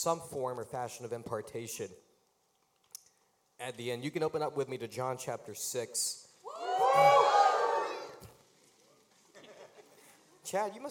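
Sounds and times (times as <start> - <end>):
speech: 0.0 - 2.1, 3.6 - 6.3, 7.0 - 7.4, 10.5 - 10.8
audience cheering: 6.5 - 8.2.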